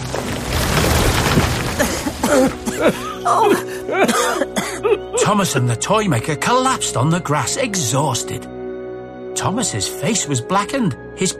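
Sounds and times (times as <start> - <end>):
flaming branch crashing to the ground: 0.0 - 2.7
fire crackling: 0.0 - 3.9
speech: 1.8 - 8.6, 9.4 - 11.3.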